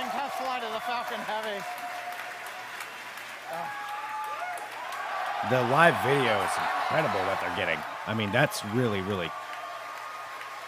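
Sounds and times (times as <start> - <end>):
crowd cheering and applauding: 0.0 - 10.6
speech: 0.8 - 1.9, 3.5 - 3.8, 5.4 - 9.5.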